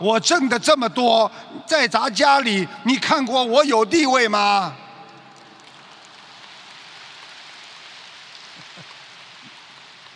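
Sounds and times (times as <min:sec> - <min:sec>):
speech: 0:00.0 - 0:04.8
audience applause: 0:05.4 - 0:10.1.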